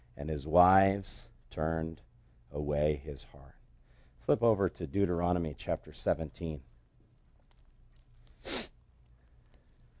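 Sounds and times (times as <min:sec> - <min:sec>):
speech: 0:00.2 - 0:03.6, 0:04.3 - 0:06.7
sniff through a runny nose: 0:08.3 - 0:08.8.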